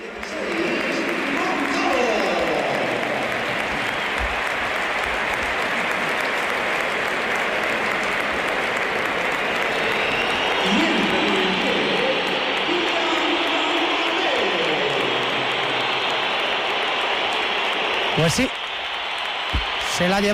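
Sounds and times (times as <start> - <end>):
large stadium crowd applauding: 0.0 - 20.3
speech: 18.2 - 18.6, 20.0 - 20.3.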